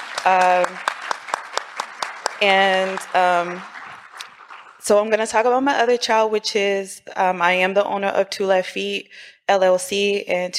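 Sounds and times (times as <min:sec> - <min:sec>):
audience applause: 0:00.0 - 0:04.9
crowd cheering: 0:00.0 - 0:05.1
speech: 0:00.2 - 0:00.9, 0:02.4 - 0:03.8, 0:04.8 - 0:10.5.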